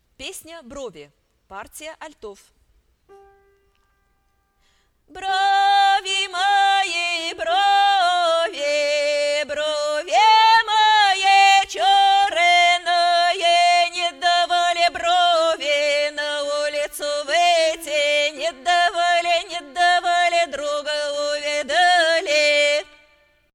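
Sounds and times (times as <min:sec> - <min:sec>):
alto choir singing: 0:05.1 - 0:23.0.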